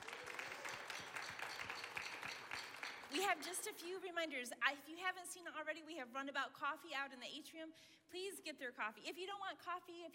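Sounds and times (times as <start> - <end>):
crowd applause: 0.0 - 3.4
speech: 3.1 - 10.1.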